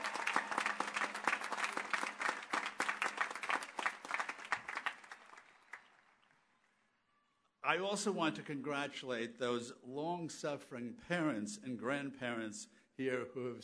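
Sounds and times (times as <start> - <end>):
graduation crowd applause for the class of 2017: 0.0 - 6.4
speech: 7.7 - 13.6.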